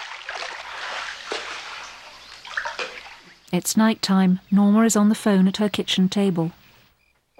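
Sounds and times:
water splashing and sloshing as someone swims away in a radio drama: 0.0 - 3.5
speech: 3.5 - 6.6.

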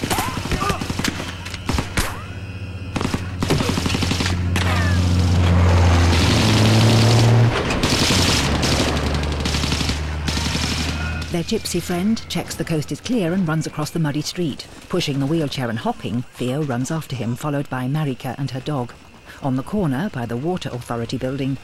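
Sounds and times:
gunfire in a street battle between refugees and the army: 0.0 - 12.0
armed vehicles speeding past: 2.4 - 12.3
speech: 11.4 - 21.6.

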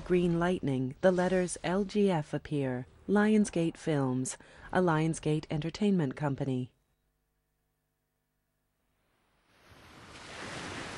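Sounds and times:
speech: 0.1 - 6.8
waves rolling onto a sandy coastline: 9.6 - 10.9.

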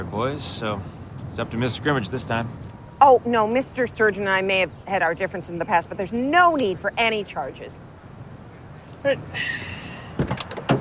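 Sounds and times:
speech: 0.0 - 7.9, 9.0 - 9.8
police car door clunks: 10.2 - 10.7.

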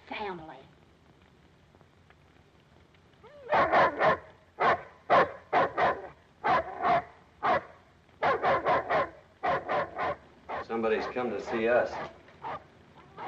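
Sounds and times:
speech: 0.2 - 0.8, 10.8 - 12.2
chained-up dog barking: 3.4 - 12.6.

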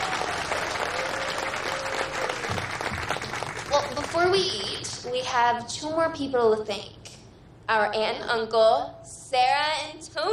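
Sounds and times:
crowd applauding: 0.0 - 4.8
speech: 4.5 - 7.0, 7.7 - 10.3.

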